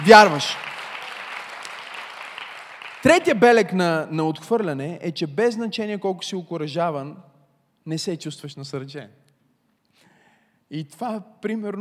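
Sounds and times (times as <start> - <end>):
speech: 0.0 - 0.7, 3.0 - 9.2, 10.7 - 11.7
audience applause: 0.0 - 3.3.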